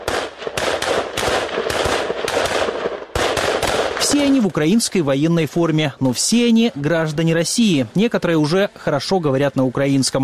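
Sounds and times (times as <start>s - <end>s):
automatic assault rifle fire during training: 0.0s - 4.5s
speech: 4.1s - 10.2s.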